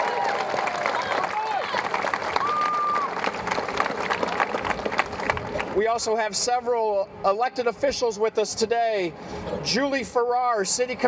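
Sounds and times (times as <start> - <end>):
scattered cheers: 0.0 - 3.4
crowd applause: 0.0 - 5.8
speech: 5.8 - 11.0.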